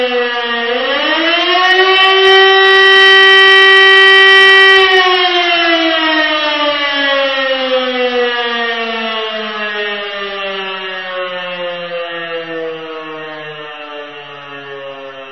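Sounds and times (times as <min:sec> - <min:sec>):
siren alarm signals: 0:00.0 - 0:15.3.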